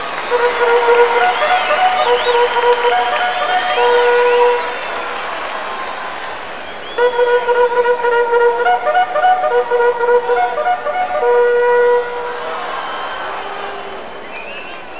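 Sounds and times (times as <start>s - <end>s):
charge fanfare: 0.1s - 4.9s, 7.0s - 12.8s.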